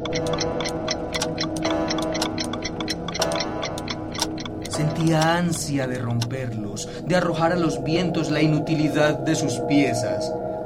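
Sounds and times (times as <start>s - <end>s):
clock ticking: 0.0s - 6.5s
speech: 5.0s - 10.6s.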